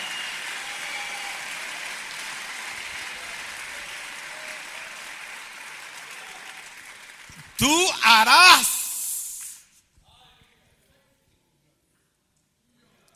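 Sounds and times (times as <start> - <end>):
audience applause: 1.6 - 9.5
speech: 7.4 - 8.7.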